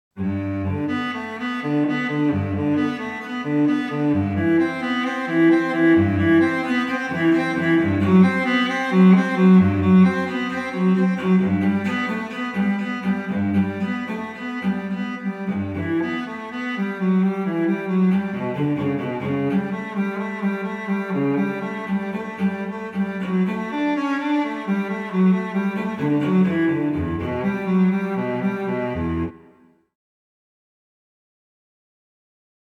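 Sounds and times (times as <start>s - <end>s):
solo cello suite prelude: 0.2s - 29.8s.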